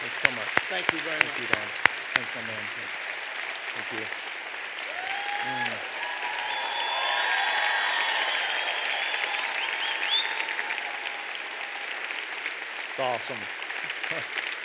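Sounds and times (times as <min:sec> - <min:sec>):
audience applause: 0:00.0 - 0:14.6
speech: 0:00.7 - 0:03.1, 0:03.8 - 0:04.3, 0:05.4 - 0:05.6, 0:13.0 - 0:14.4.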